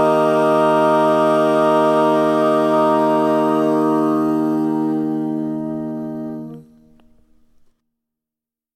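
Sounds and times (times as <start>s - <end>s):
barbershop tags sung by all parts: 0.0s - 6.6s.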